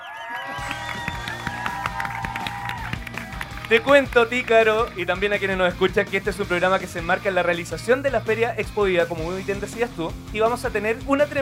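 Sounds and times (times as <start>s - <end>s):
spontaneous audience applause: 0.0s - 4.9s
speech: 3.7s - 11.3s.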